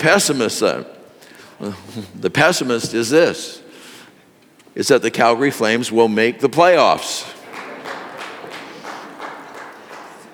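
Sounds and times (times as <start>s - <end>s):
speech: 0.0s - 1.0s, 1.6s - 3.6s, 4.8s - 7.4s
soft hiss: 0.0s - 10.3s
one person clapping: 7.5s - 10.3s.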